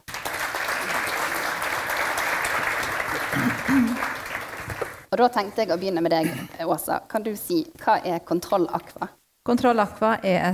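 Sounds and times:
audience applause: 0.0s - 5.1s
speech: 3.4s - 4.1s, 5.1s - 10.5s.

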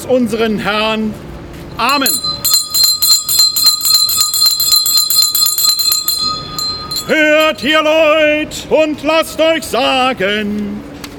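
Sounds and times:
speech: 0.0s - 2.3s, 7.1s - 10.9s
clock bell striking twelve: 1.9s - 7.9s.

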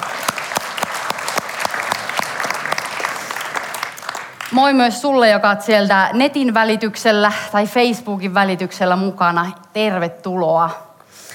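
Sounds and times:
audience applause: 0.0s - 4.6s
speech: 4.5s - 10.9s.

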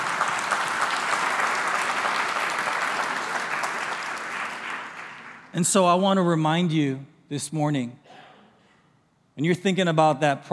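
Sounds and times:
audience applause: 0.0s - 5.5s
speech: 5.6s - 8.0s, 9.4s - 10.5s.

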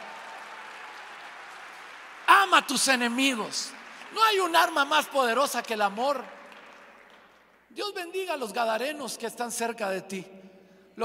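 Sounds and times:
audience applause: 0.0s - 7.4s
speech: 2.5s - 6.4s, 7.7s - 10.4s.

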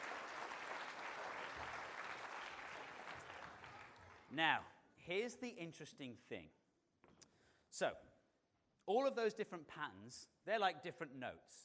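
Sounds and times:
audience applause: 0.0s - 4.3s
speech: 4.3s - 6.6s, 7.7s - 8.1s, 8.8s - 11.6s.

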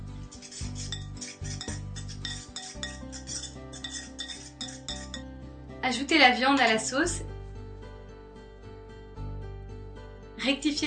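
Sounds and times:
spoon clinking and scraping in a bowl mixing onion, ketchup, Tabasco, Worcestershire sauce: 0.3s - 5.2s, 6.6s - 6.9s
speech: 5.9s - 7.3s, 10.5s - 10.8s.

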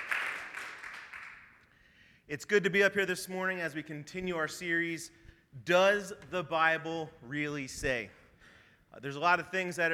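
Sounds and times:
audience applause: 0.0s - 1.6s
speech: 2.3s - 8.2s, 8.9s - 9.9s.

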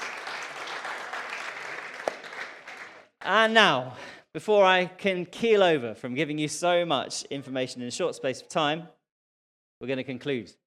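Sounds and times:
crowd applauding: 0.0s - 3.2s
speech: 3.2s - 9.0s, 9.8s - 10.6s.

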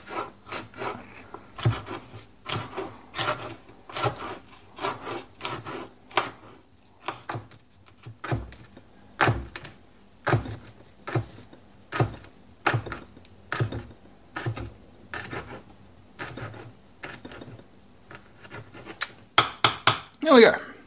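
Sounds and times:
knife chopping chilies on cutting board: 1.6s - 6.4s, 7.0s - 15.6s, 16.2s - 20.1s
speech: 20.4s - 20.6s.

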